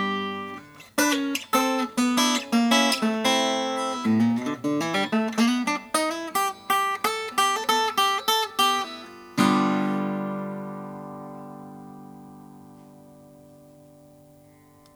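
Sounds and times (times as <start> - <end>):
Harmony Patrician H1415 natural guitar playing: 0.0 - 14.9.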